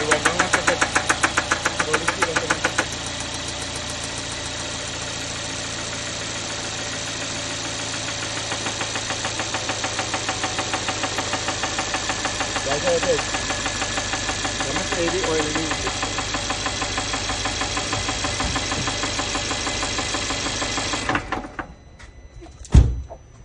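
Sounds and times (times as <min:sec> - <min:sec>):
W205 C180 engine knocking: 0:00.0 - 0:21.6.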